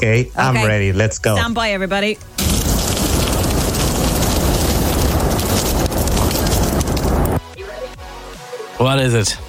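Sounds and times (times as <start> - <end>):
speech: 0.0 - 2.4, 8.8 - 9.4
sausages sizzling on a hot barbecue grill: 2.2 - 7.4.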